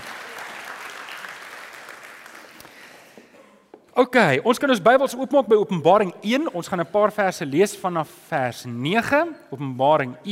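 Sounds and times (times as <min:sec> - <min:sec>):
audience applause: 0:00.0 - 0:03.0
speech: 0:04.0 - 0:10.3.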